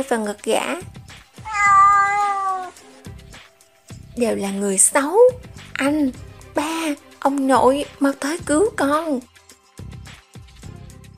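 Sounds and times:
speech: 0.0 - 1.0, 4.2 - 9.3
kitten meowing pitifully: 1.4 - 2.8.

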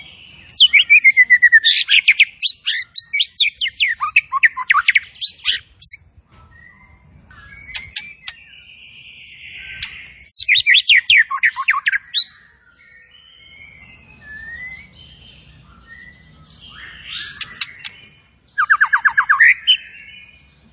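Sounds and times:
zebra finch song: 0.0 - 20.7.

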